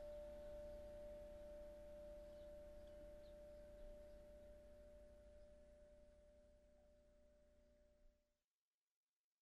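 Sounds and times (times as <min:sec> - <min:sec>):
wind chimes: 0:00.0 - 0:06.2.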